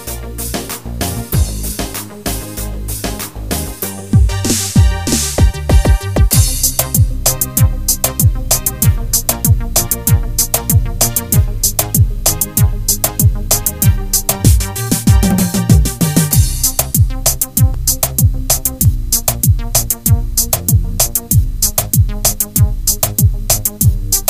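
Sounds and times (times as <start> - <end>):
pop halay dance music on a keyboard: 0.0 - 24.2.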